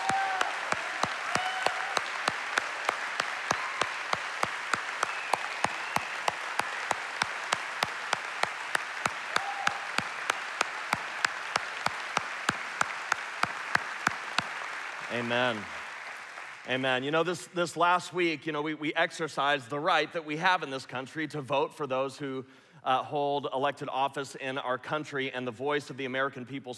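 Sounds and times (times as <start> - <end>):
audience applause honoring veterans: 0.0 - 17.0
speech: 15.2 - 15.8, 16.7 - 26.7.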